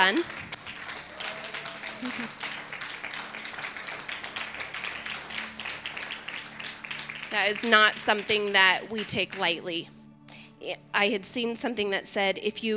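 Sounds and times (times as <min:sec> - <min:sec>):
speech: 0:00.0 - 0:00.5, 0:07.3 - 0:10.0, 0:10.6 - 0:12.7
audience clapping: 0:00.0 - 0:09.5.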